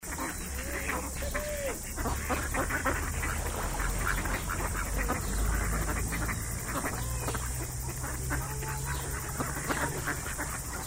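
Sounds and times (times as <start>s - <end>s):
ducks quacking: 0.0s - 10.8s.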